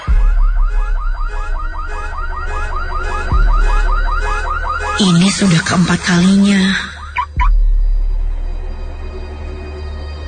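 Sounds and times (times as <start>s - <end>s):
car alarm going off by itself at midnight: 0.0s - 7.6s
speech: 5.0s - 6.9s.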